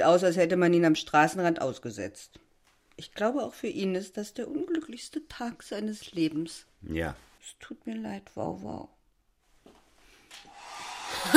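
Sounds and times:
speech: 0:00.0 - 0:02.4, 0:03.0 - 0:09.0
broken hair dryer blowing: 0:10.5 - 0:11.3.

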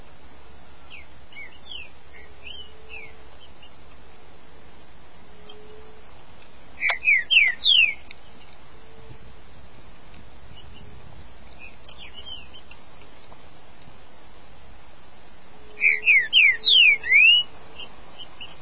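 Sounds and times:
green-winged saltator whistling song: 0:00.9 - 0:03.7, 0:06.8 - 0:08.1, 0:11.5 - 0:12.7, 0:15.7 - 0:18.6.

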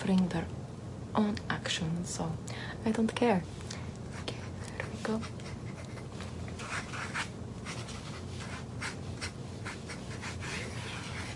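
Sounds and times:
speech: 0:00.0 - 0:03.6, 0:05.1 - 0:05.4
pencil scratching across paper while drawing a sketch: 0:04.1 - 0:11.3.

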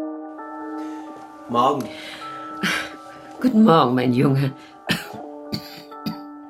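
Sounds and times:
speech: 0:01.6 - 0:02.0, 0:03.5 - 0:04.7
person coughing: 0:04.9 - 0:06.3.

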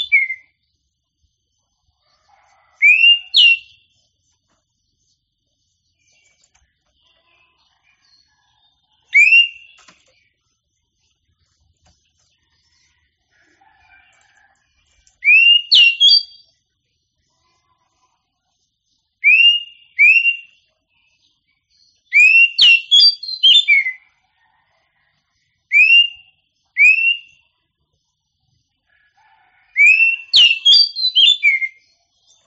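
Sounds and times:
Oriental magpie-robin song with rising whistles and sharp varied whistled notes: 0:02.8 - 0:03.7, 0:09.1 - 0:09.8, 0:15.2 - 0:16.4, 0:19.2 - 0:20.5, 0:22.1 - 0:24.0, 0:25.7 - 0:27.3, 0:29.8 - 0:31.8.

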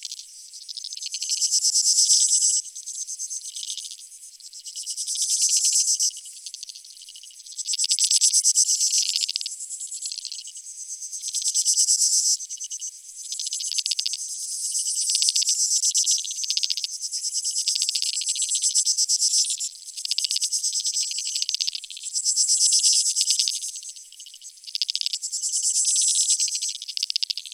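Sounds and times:
insect chorus: 0:00.0 - 0:27.5.

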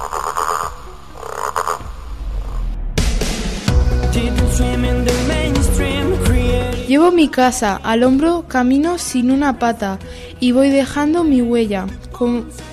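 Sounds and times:
frog croaking in buzzy bursts: 0:00.0 - 0:02.8
bright busy musical passage: 0:03.7 - 0:12.7
speech: 0:04.2 - 0:05.4, 0:06.9 - 0:12.7.

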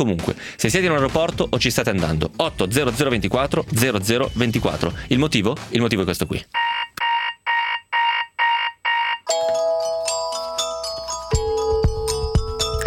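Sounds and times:
speech: 0:00.0 - 0:06.7
alarm clock buzzy electronic beeps: 0:06.6 - 0:12.8.

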